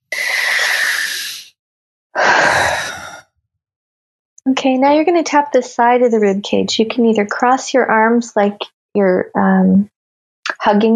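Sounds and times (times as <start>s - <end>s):
deep breaths: 0.0s - 1.5s, 2.2s - 3.2s
speech: 4.5s - 9.9s, 10.6s - 10.9s.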